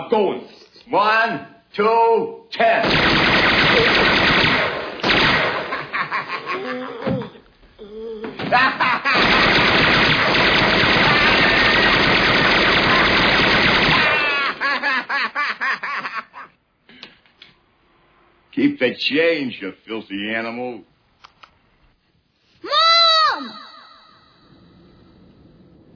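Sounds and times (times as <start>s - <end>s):
speech: 0.0s - 4.2s, 18.6s - 20.9s
tommy-gun style machine-gun fire from a gangster film scene: 2.8s - 6.5s, 9.0s - 14.7s
laughter: 5.7s - 7.4s, 8.4s - 9.2s, 14.4s - 16.6s.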